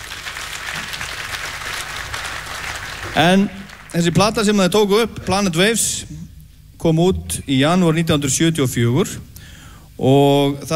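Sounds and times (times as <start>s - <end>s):
concert audience applause at a tribute show: 0.0s - 4.6s
speech: 3.2s - 6.2s, 6.8s - 9.3s, 10.0s - 10.7s.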